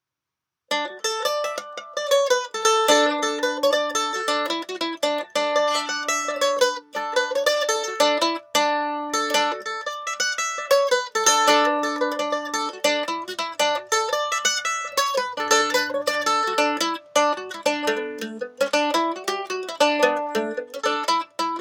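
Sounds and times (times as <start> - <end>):
mandolin picking with different picks: 0.7 - 21.5.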